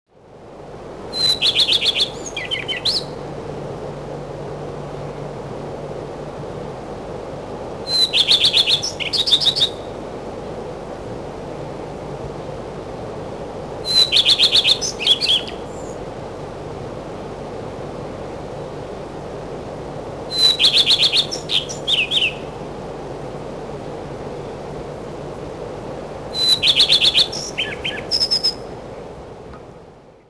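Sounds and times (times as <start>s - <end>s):
common redstart singing: 1.1s - 3.2s, 7.9s - 9.9s, 13.8s - 16.0s, 20.3s - 22.5s, 26.3s - 28.7s.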